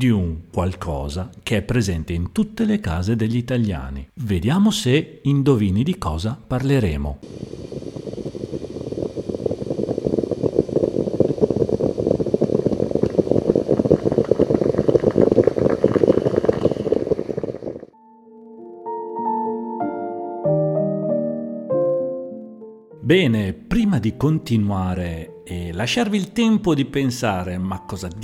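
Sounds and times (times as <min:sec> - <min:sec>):
speech: 0:00.0 - 0:07.8, 0:24.1 - 0:28.2
moka pot coffee maker gurgling: 0:07.2 - 0:18.0
soft melodic tune of sustained tones: 0:18.0 - 0:28.2.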